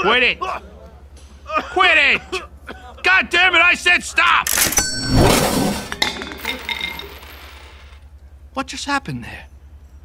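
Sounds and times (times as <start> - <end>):
speech: 0.0 - 0.7, 1.5 - 5.8, 8.6 - 9.5
cash register ringing by itself: 4.5 - 8.0.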